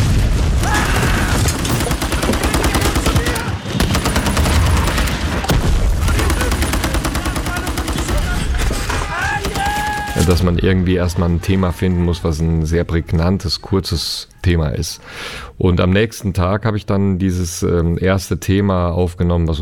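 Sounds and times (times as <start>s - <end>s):
film battle rapid gunfire: 0.0s - 10.5s
film battle explosions booming: 0.0s - 10.8s
speech: 10.4s - 19.6s.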